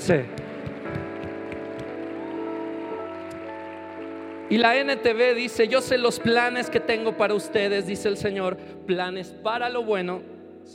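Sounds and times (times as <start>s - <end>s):
audience applause: 0.0s - 5.8s
speech: 0.1s - 0.4s, 4.5s - 10.7s.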